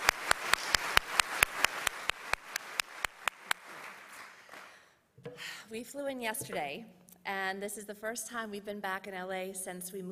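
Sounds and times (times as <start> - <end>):
audience applause: 0.0 - 4.8
speech: 5.4 - 10.1.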